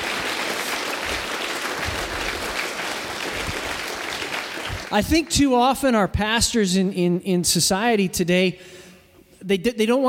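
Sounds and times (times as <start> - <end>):
audience applause: 0.0 - 5.1
speech: 4.9 - 8.8, 9.4 - 10.0.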